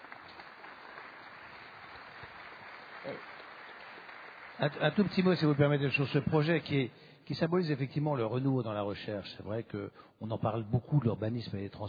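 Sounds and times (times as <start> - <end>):
audience applause: 0.0 - 6.5
speech: 3.0 - 3.3, 4.6 - 11.8.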